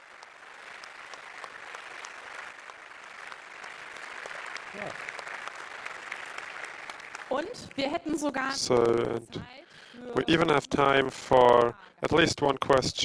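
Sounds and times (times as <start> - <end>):
audience applause after a talk: 0.0 - 12.2
speech: 4.7 - 5.1, 7.3 - 13.0
voice-like sound: 8.4 - 13.0.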